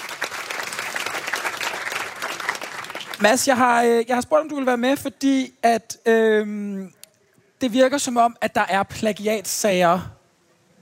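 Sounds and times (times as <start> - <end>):
audience applauding an anthropology lecturer arriving on stage: 0.0 - 3.5
speech: 3.2 - 7.0, 7.6 - 10.2.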